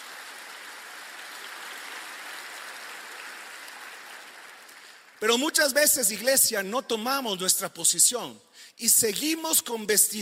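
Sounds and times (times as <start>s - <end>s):
audience applause: 0.0s - 5.2s
speech: 5.2s - 10.1s.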